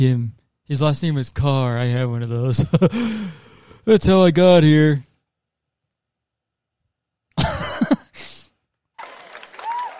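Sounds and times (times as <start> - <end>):
speech: 0.0 - 5.1
audience applause: 9.0 - 9.9.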